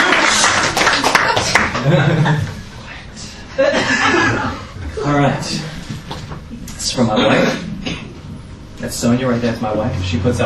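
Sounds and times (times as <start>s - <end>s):
audience clapping: 0.0s - 2.0s
laughter: 0.0s - 2.7s, 3.6s - 4.8s
speech: 6.9s - 7.6s, 8.9s - 10.4s.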